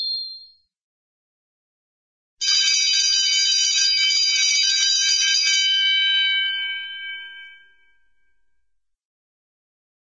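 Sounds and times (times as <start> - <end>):
big cartoon bell bong: 2.5 - 8.6.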